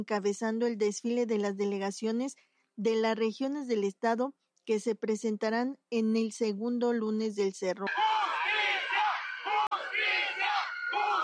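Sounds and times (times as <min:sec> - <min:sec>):
speech: 0:00.0 - 0:08.2
protesters shouting: 0:07.9 - 0:11.2.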